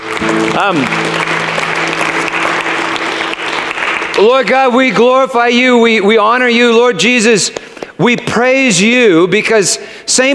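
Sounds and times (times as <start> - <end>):
audience clapping: 0.0 - 5.8
speech: 0.6 - 1.3, 4.2 - 10.3.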